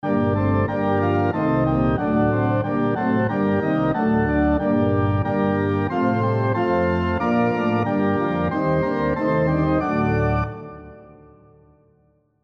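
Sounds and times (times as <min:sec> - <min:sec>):
SATB four-part harmony on piano: 0:00.0 - 0:11.6.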